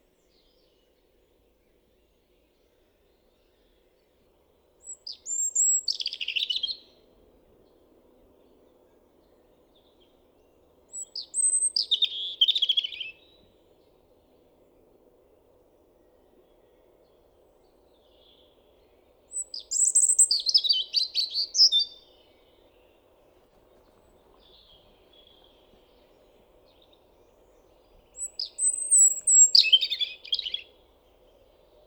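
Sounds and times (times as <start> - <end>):
European robin song: 4.8 - 7.0, 9.9 - 13.4, 18.0 - 31.8.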